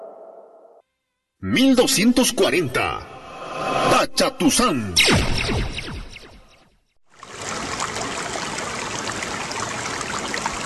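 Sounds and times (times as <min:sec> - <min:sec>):
speech: 0:01.4 - 0:05.8
fresh running water: 0:07.1 - 0:10.6.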